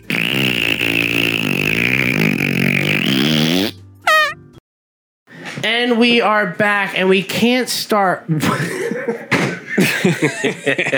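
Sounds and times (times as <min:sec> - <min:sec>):
long raspy fart noise: 0:00.0 - 0:04.4
squeaky high-pitched trill: 0:04.1 - 0:04.4
speech: 0:05.8 - 0:08.8, 0:10.0 - 0:10.9
laughter: 0:08.5 - 0:10.9.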